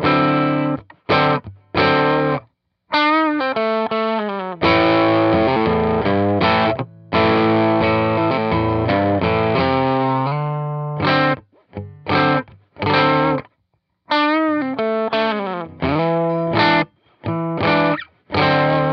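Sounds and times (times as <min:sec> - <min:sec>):
distorted guitar amp on bridge pickup: 0:00.0 - 0:13.5, 0:14.1 - 0:18.9.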